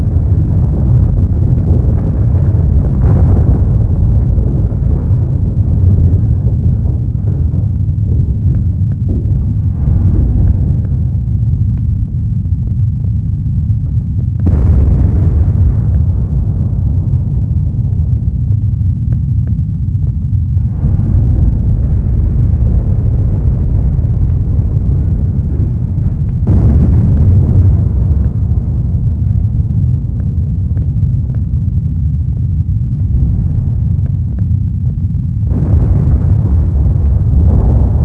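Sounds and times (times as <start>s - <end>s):
explosions: 0.0s - 38.0s
rumbling flames: 0.0s - 38.0s.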